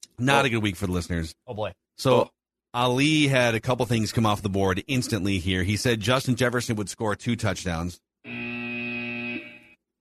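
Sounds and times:
speech: 0:00.2 - 0:08.4
buzzer being hit: 0:08.2 - 0:09.8.

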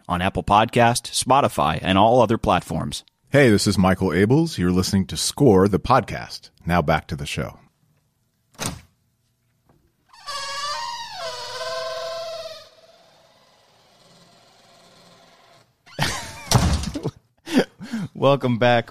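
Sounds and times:
speech: 0:00.1 - 0:07.6, 0:18.2 - 0:18.9
squeaky door slamming: 0:10.1 - 0:14.4, 0:15.9 - 0:17.0.

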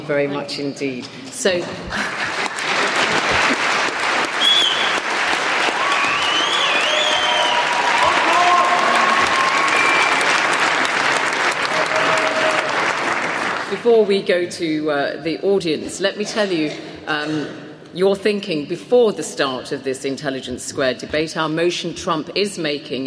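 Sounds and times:
speech: 0:00.1 - 0:02.3, 0:13.8 - 0:23.0
audience applause and standing ovation after a debate speech: 0:01.9 - 0:13.7.

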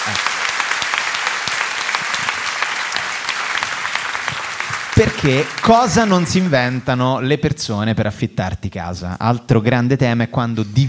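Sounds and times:
speech: 0:00.0 - 0:00.4, 0:05.0 - 0:10.8
crowd applause: 0:00.0 - 0:07.2.

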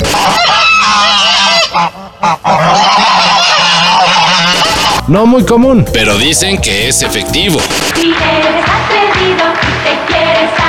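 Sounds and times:
geese honking: 0:00.0 - 0:05.1
speech: 0:05.1 - 0:10.6.

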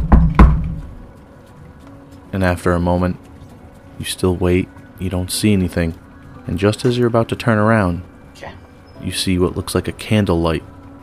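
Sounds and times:
knocking on a door: 0:00.0 - 0:01.0
speech: 0:02.3 - 0:03.3, 0:04.0 - 0:11.0.

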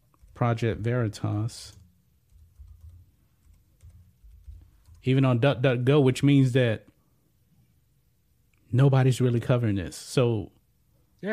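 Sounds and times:
typing on a computer keyboard: 0:00.1 - 0:00.4, 0:01.7 - 0:05.1
speech: 0:00.4 - 0:01.8, 0:05.0 - 0:06.9, 0:08.7 - 0:10.6.

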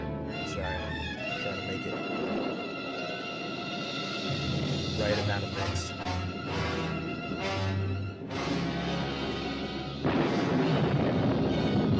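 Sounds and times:
quiet film music score: 0:00.0 - 0:11.9
speech: 0:01.7 - 0:02.2, 0:05.0 - 0:06.0
distant thunder in film soundtrack: 0:01.9 - 0:07.0, 0:08.4 - 0:11.9.

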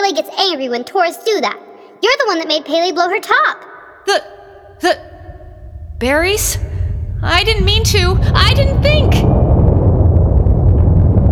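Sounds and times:
speech: 0:00.1 - 0:05.1, 0:06.0 - 0:09.4
earthquake rumble: 0:04.6 - 0:11.2.

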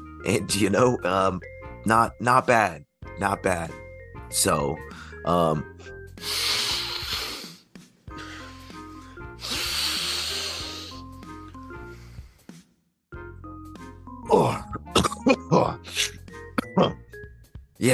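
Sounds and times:
music: 0:00.0 - 0:17.9
speech: 0:00.2 - 0:06.6
snorting lines of candy powder: 0:06.2 - 0:11.1, 0:11.8 - 0:12.6.

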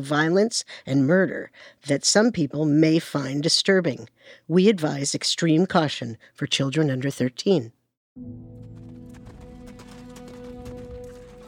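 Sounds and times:
speech: 0:00.0 - 0:08.6
horse-drawn carriage hooves clip-clopping: 0:08.4 - 0:11.4.

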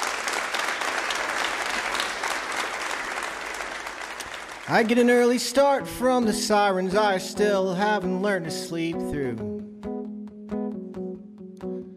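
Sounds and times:
audience applause: 0:00.0 - 0:05.4
speech: 0:04.7 - 0:09.7.

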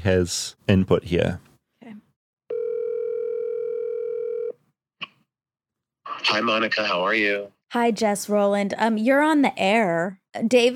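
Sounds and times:
speech: 0:00.0 - 0:01.5, 0:06.2 - 0:10.7
telephone dial tone on speakerphone: 0:02.5 - 0:04.6.

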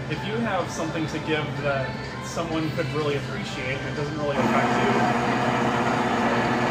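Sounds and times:
speech: 0:00.1 - 0:05.9
coffee machine running: 0:04.2 - 0:06.6.

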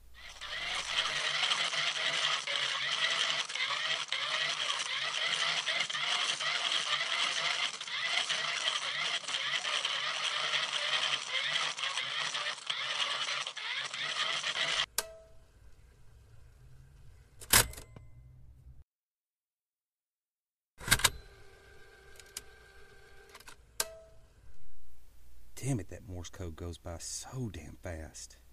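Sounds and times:
hand crank turned with a grinding whir: 0:00.2 - 0:14.9
speech: 0:25.7 - 0:28.4.

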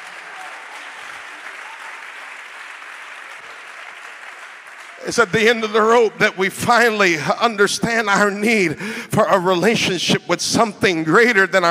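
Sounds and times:
audience clapping hands: 0:00.0 - 0:06.3
speech: 0:05.0 - 0:11.6.

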